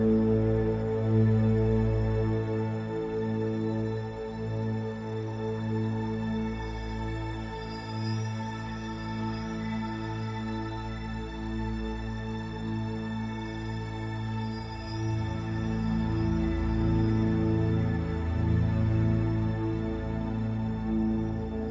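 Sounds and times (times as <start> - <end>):
strings: 0.0 - 21.7
synth pads: 0.0 - 21.7.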